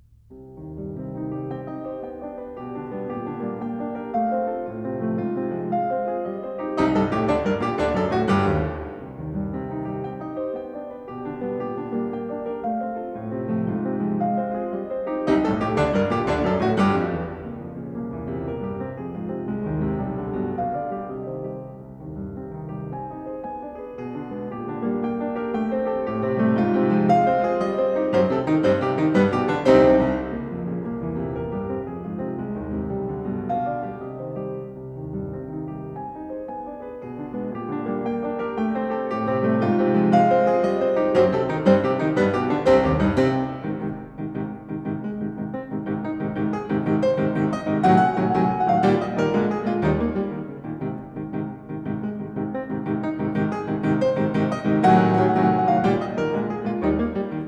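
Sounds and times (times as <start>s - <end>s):
piano sonata movement in E flat major: 0.0s - 57.4s.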